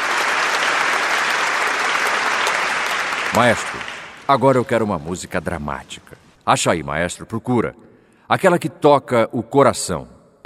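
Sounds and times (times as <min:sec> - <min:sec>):
crowd applause: 0:00.0 - 0:05.3
speech: 0:03.4 - 0:10.4.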